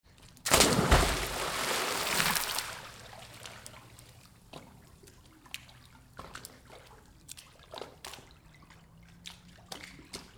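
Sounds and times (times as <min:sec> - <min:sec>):
diving into pool: 0:00.5 - 0:03.1.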